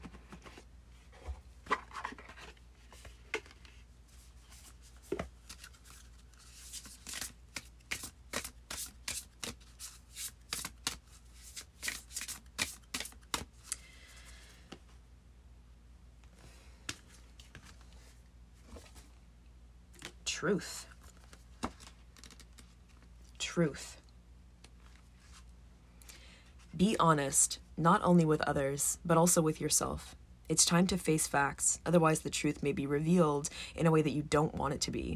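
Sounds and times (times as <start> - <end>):
deck of spellcasting oracle cards being shuffled: 0.0 - 13.9, 16.4 - 19.1, 20.0 - 20.2, 20.9 - 23.1
speech: 20.4 - 20.9, 23.6 - 24.0, 26.8 - 35.1.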